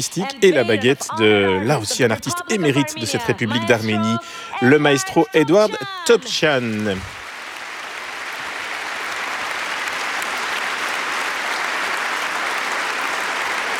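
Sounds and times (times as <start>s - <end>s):
laughter: 0.0s - 7.2s
speech: 0.0s - 7.2s
large audience applauding an orchestra: 0.0s - 13.7s.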